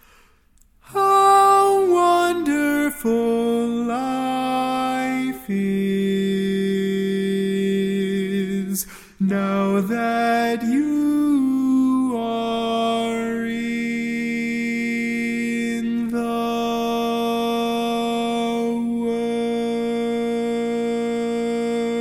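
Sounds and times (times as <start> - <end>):
barbershop lead singing: 0.9 - 21.9.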